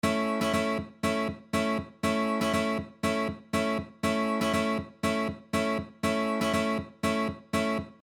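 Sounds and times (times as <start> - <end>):
rhythm guitar: 0.0 - 8.0.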